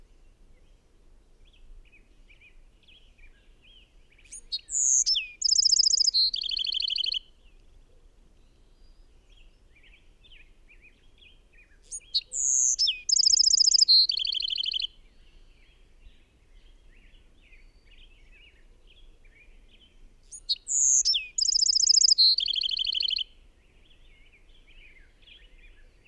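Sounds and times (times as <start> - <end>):
bird song: 0.0 - 26.0
other birds chirping: 4.3 - 7.2, 11.8 - 14.9, 20.2 - 23.2.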